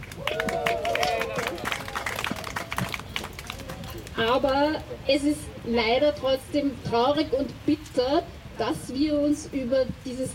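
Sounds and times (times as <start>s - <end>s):
brief audience applause: 0.0s - 4.4s
speech: 4.2s - 10.3s.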